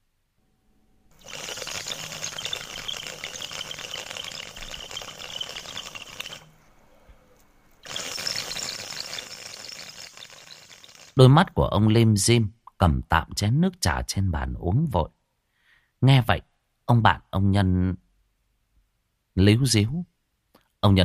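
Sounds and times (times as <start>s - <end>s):
Vietnamese bamboo water pipe bubbling while smoked: 1.2s - 6.5s, 7.8s - 11.2s
speech: 11.2s - 15.2s, 16.0s - 18.0s, 19.4s - 20.1s, 20.8s - 21.0s.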